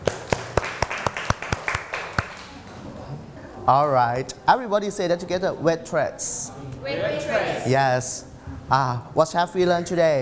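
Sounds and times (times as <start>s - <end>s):
students clapping hands: 0.0s - 2.8s
speech: 3.7s - 10.2s.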